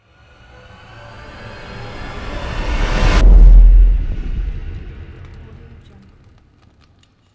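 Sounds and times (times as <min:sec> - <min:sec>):
cinematic fire logo: 0:00.1 - 0:06.8.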